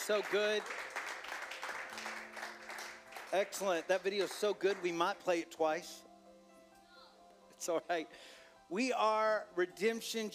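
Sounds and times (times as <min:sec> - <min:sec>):
audience clapping hands: 0:00.0 - 0:05.0
speech: 0:00.1 - 0:01.0, 0:03.3 - 0:06.1, 0:07.6 - 0:10.3.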